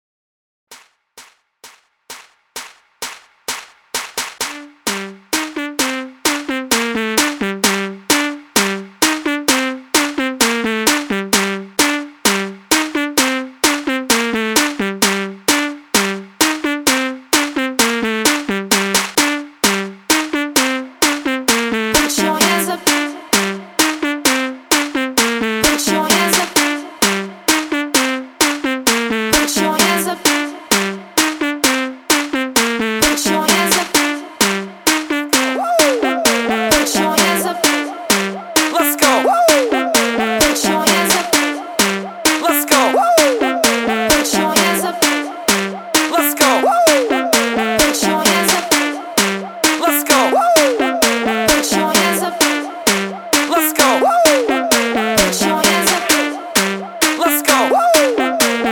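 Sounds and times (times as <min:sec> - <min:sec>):
dance music at 130 BPM: 0:00.7 - 0:58.7.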